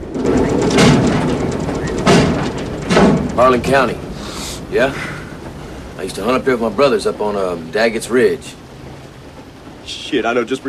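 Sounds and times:
head banging on a metal locker: 0.0s - 5.6s
speech: 3.4s - 4.0s, 4.7s - 5.1s, 6.0s - 8.6s, 9.9s - 10.6s.

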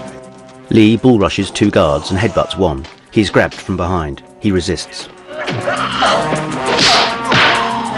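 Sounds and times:
speech: 0.7s - 6.4s
punch landing in a film fight scene: 6.7s - 7.7s.

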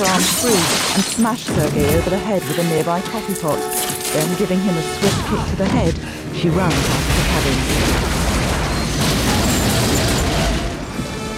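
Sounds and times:
speech: 0.0s - 8.2s
large explosion from an EM gun outside a warehouse: 6.8s - 10.8s.

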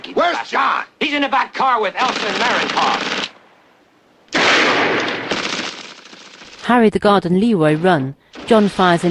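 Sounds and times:
speech: 0.3s - 3.1s, 6.7s - 9.0s
gunshot fired at a padlock aboard a train: 4.3s - 5.7s.

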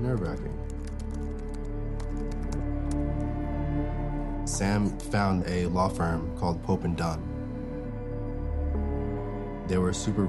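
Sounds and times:
speech: 0.0s - 1.3s, 4.5s - 7.3s, 9.7s - 10.2s
typing on a computer keyboard: 0.0s - 3.4s
steady sustained tonal backdrop: 0.1s - 10.2s.

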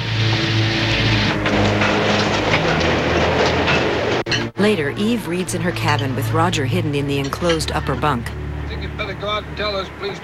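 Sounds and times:
passenger train in motion: 0.0s - 10.2s
clatter of the train cars: 0.2s - 8.3s
speech: 4.6s - 8.4s, 9.0s - 10.2s.

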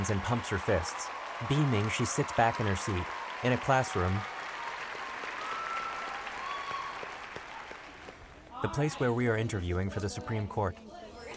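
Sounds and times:
speech: 0.0s - 4.4s, 8.6s - 11.3s
audience applause including teens: 0.0s - 8.6s.

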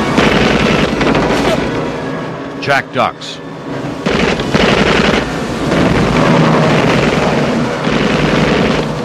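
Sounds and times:
machine gun fire in a dramatized shootout aboard a boat: 0.2s - 1.3s, 4.1s - 8.9s
speech: 2.7s - 4.1s.

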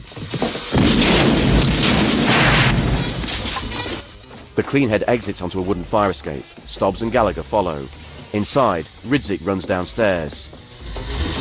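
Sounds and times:
gunshot fired by a fleeing man in a building: 0.7s - 3.3s
speech: 4.6s - 10.5s.

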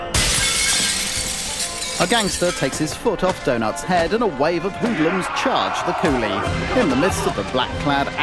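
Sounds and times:
tailor's shop window glass shattering as a gangster is kicked through: 0.1s - 2.9s
crashing impacts: 0.1s - 4.2s
speech: 2.0s - 8.2s.

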